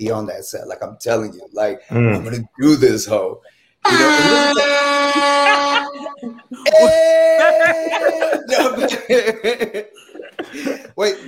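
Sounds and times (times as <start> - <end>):
speech: 0.0 - 11.2
air horn sound effect blasts: 3.8 - 6.2
people laughing: 3.9 - 11.2.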